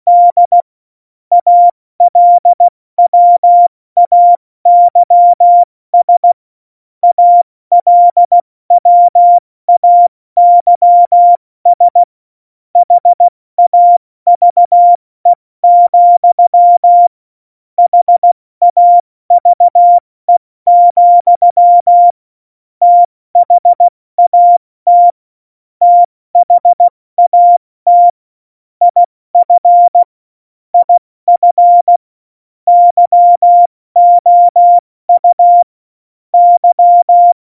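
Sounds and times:
CW Morse code at tempo 70: 0.1s - 0.6s, 1.3s - 6.4s, 7.0s - 12.1s, 12.8s - 15.0s, 15.6s - 17.1s, 17.8s - 20.0s, 20.7s - 22.1s, 22.8s - 25.2s, 25.8s - 28.2s, 28.8s - 30.1s, 30.8s - 32.0s, 32.7s - 35.7s, 36.4s - 37.4s.

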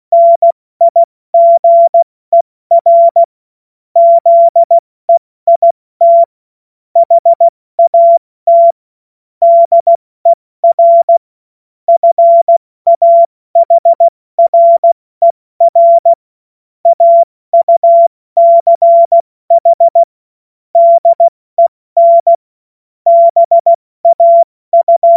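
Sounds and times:
CW Morse code beeps: 0.1s - 3.3s, 4.0s - 4.8s, 5.5s - 6.3s, 7.0s - 8.8s, 9.4s - 10.0s, 10.6s - 11.2s, 11.9s - 16.2s, 16.8s - 20.1s, 20.8s - 22.4s, 23.1s - 25.1s.

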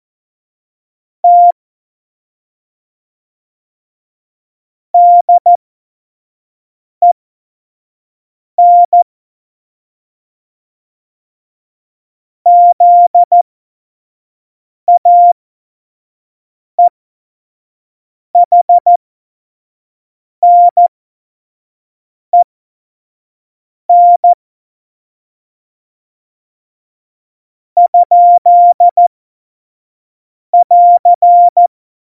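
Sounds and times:
CW Morse code beeps: 1.3s - 1.5s, 5.0s - 5.5s, 8.6s - 9.0s, 12.5s - 13.4s, 14.9s - 15.4s, 18.4s - 19.0s, 20.4s - 20.9s, 23.9s - 24.4s, 27.8s - 29.1s, 30.6s - 31.7s.

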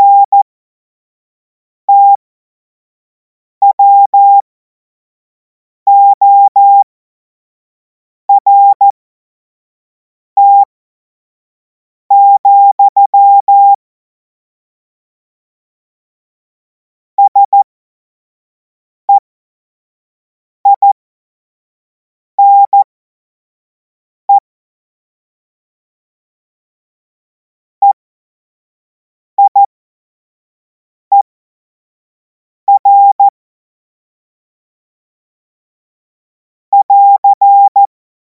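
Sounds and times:
CW Morse code beeps: 0.0s - 0.4s, 1.9s - 2.2s, 3.6s - 4.4s, 5.9s - 6.8s, 8.4s - 8.9s, 10.4s - 10.7s, 12.1s - 13.8s, 17.2s - 17.6s, 20.7s - 21.0s, 22.4s - 22.9s, 29.4s - 29.7s, 32.7s - 33.3s, 36.8s - 37.9s.

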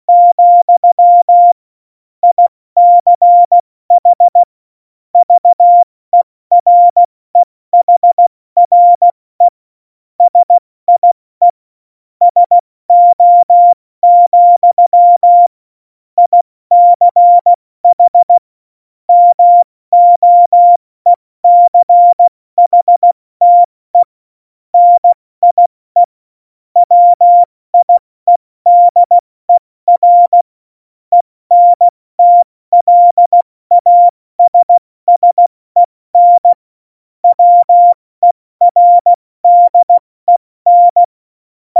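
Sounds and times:
CW Morse code beeps: 0.1s - 1.6s, 2.2s - 4.5s, 5.2s - 5.9s, 6.5s - 7.1s, 7.8s - 9.5s, 10.2s - 11.6s, 12.3s - 15.5s, 16.2s - 18.4s, 19.1s - 20.8s, 21.4s - 24.1s, 24.8s - 26.1s, 26.8s - 30.5s, 31.1s - 36.6s, 37.2s - 41.1s.

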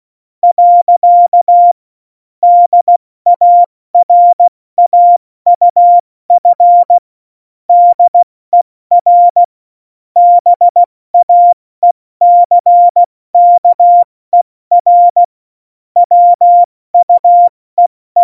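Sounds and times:
CW Morse code beeps: 0.4s - 1.8s, 2.4s - 7.0s, 7.7s - 8.2s, 8.9s - 9.5s, 10.2s - 11.6s, 12.2s - 14.1s, 14.7s - 15.3s, 16.0s - 18.2s.

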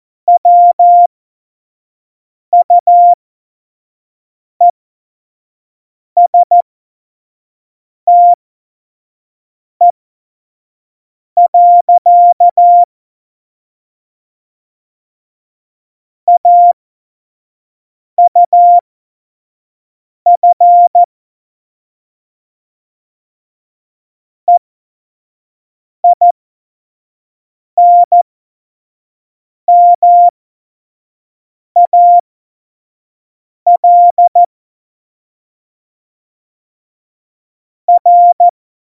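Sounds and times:
Morse code course beeps: 0.3s - 1.1s, 2.6s - 3.2s, 6.2s - 6.6s, 8.1s - 8.4s, 11.5s - 12.9s, 16.3s - 16.8s, 18.2s - 18.8s, 20.3s - 21.1s, 26.0s - 26.3s, 27.8s - 28.2s, 29.7s - 30.3s, 31.8s - 32.2s, 33.7s - 34.5s, 37.9s - 38.5s.

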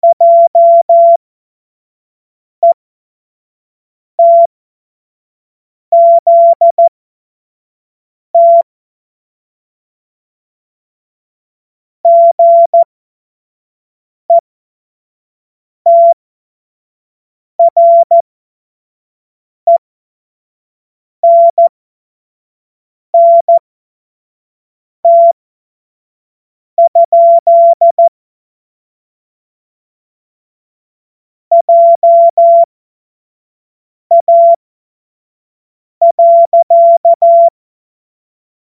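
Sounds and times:
Morse code course tones: 0.0s - 1.2s, 6.0s - 6.9s, 8.4s - 8.6s, 12.1s - 12.9s, 15.9s - 16.2s, 17.6s - 18.2s, 21.2s - 21.7s, 23.2s - 23.6s, 25.1s - 25.3s, 26.8s - 28.1s, 31.5s - 32.7s, 34.1s - 34.6s, 36.0s - 37.5s.

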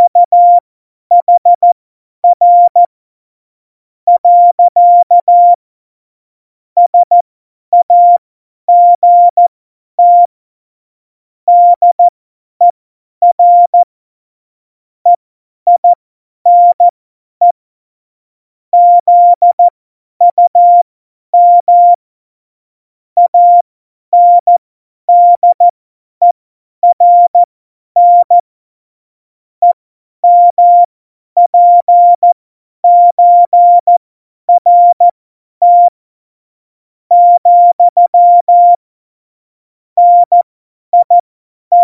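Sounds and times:
CW Morse code beeps: 0.0s - 2.9s, 4.1s - 5.6s, 6.9s - 7.2s, 7.8s - 9.4s, 10.0s - 10.3s, 11.5s - 12.1s, 13.2s - 13.9s, 15.7s - 17.6s, 18.8s - 19.7s, 20.3s - 20.8s, 21.4s - 22.0s, 23.2s - 23.6s, 24.2s - 28.4s, 29.6s - 36.0s, 37.1s - 38.8s, 40.0s - 41.8s.

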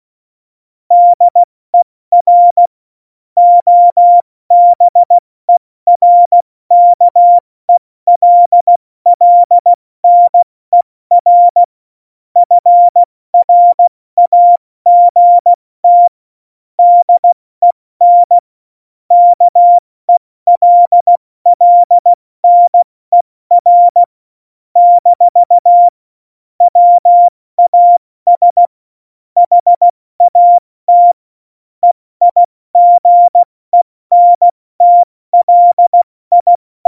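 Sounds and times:
CW Morse code beeps: 0.9s - 1.5s, 2.1s - 2.6s, 3.4s - 7.4s, 8.1s - 10.5s, 11.1s - 11.7s, 12.4s - 16.2s, 16.8s - 18.4s, 19.1s - 19.8s, 20.5s - 24.1s, 24.8s - 26.0s, 26.6s - 28.7s, 29.4s - 31.2s, 31.8s - 36.8s.

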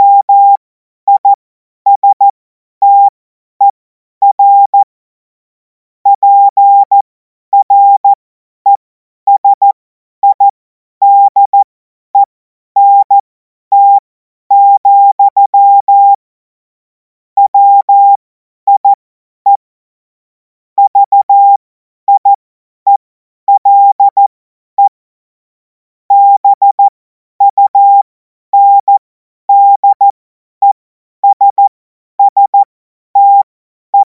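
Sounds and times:
CW Morse code beeps: 0.0s - 1.3s, 1.9s - 3.1s, 4.2s - 4.9s, 6.1s - 7.0s, 7.6s - 16.2s, 17.4s - 19.6s, 20.8s - 25.0s, 26.1s - 34.1s.

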